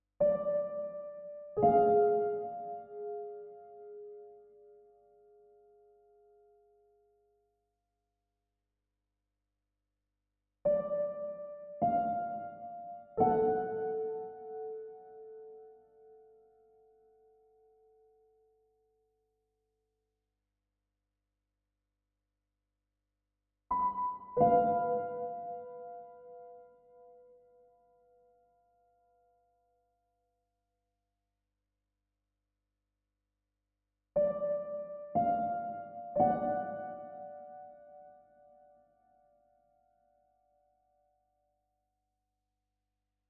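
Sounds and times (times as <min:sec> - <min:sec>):
piano: 0:00.2 - 0:07.0, 0:10.7 - 0:18.3, 0:23.7 - 0:29.6, 0:34.2 - 0:40.6.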